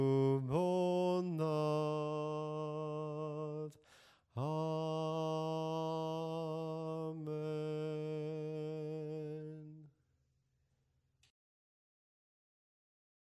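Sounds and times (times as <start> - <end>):
soprano singing hymns: 0.0 - 3.8, 4.4 - 9.8.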